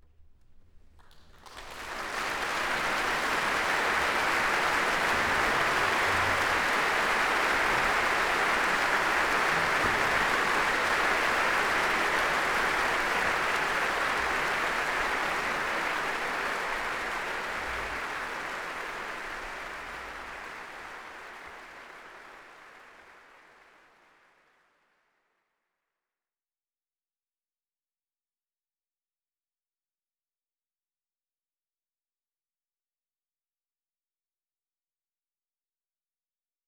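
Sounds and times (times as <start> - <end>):
applause: 0.5 - 25.6.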